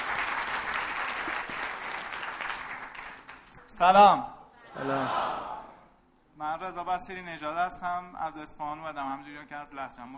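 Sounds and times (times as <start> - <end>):
crowd clapping: 0.0 - 3.6
speech: 3.8 - 5.5, 6.4 - 10.1.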